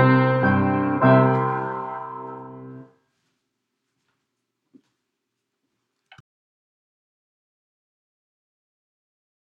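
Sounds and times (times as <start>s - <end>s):
instrumental reprise: 0.0s - 2.9s.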